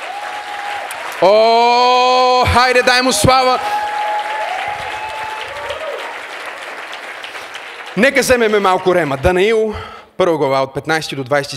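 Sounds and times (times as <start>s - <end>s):
audience applause: 0.0s - 9.8s
speech: 1.2s - 3.8s, 8.0s - 11.5s.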